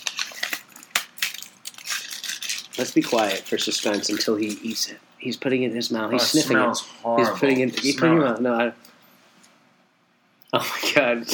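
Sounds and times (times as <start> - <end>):
spiced chili chocolate bar breaking: 0.0 - 4.1
speech: 2.8 - 8.9, 10.5 - 11.3.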